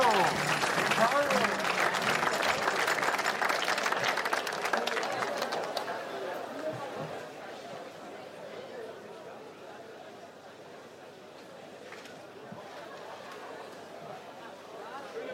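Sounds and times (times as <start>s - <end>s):
audience applause welcoming performers on stage: 0.0s - 6.7s
crowd cheering: 0.0s - 7.0s
crowd chatter: 0.0s - 15.3s.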